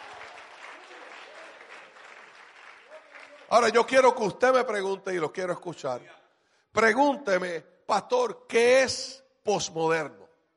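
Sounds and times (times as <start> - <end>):
audience applause: 0.0 - 4.0
speech: 3.5 - 6.2, 6.8 - 10.2.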